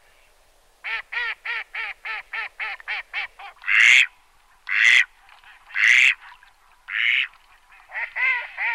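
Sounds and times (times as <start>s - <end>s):
mallards quacking: 0.9s - 8.7s.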